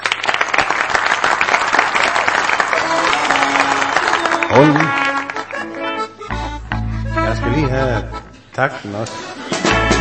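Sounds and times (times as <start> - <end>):
audience applause welcoming a performer at a show: 0.0 - 5.9
speech: 4.6 - 5.0, 7.3 - 9.6.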